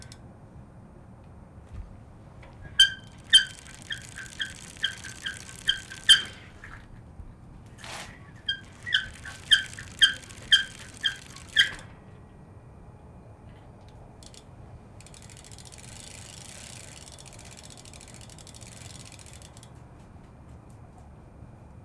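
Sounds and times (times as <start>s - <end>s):
gear shifting: 1.7s - 12.0s
squeaking: 2.3s - 6.9s, 7.7s - 11.9s.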